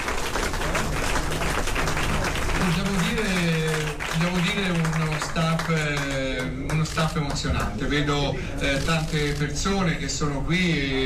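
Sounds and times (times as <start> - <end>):
crowd applause: 0.0 - 7.8
speech: 4.5 - 11.0.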